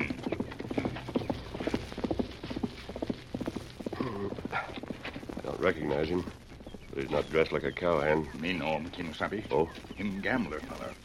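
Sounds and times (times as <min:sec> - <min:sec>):
horse hoofbeats on a trail, radio drama effect: 0:00.0 - 0:11.0
speech: 0:05.6 - 0:06.4, 0:07.0 - 0:11.0.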